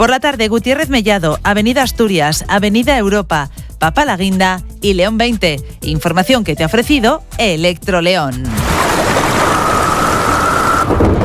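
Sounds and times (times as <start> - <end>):
speech: 0.0 - 8.9
heavy rain: 8.6 - 11.2
thunder rumble: 8.6 - 11.2.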